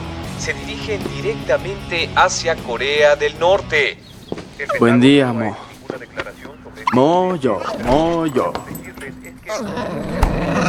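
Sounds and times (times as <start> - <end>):
speech: 0.4 - 4.0, 4.6 - 10.6
dog growling and barking: 9.4 - 10.6.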